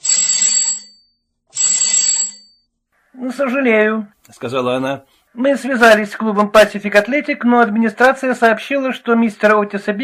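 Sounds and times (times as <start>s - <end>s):
telephone ringing: 0.0s - 2.7s
speech: 3.2s - 10.0s.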